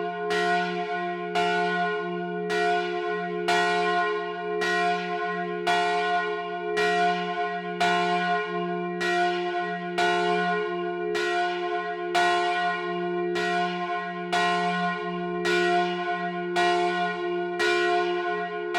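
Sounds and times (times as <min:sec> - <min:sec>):
church bell ringing in Lausanne: 0:00.0 - 0:18.7.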